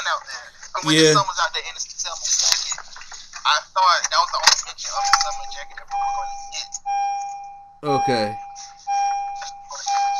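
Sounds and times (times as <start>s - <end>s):
speech: 0.1s - 7.1s, 7.8s - 8.4s
car warning chime: 5.0s - 10.1s.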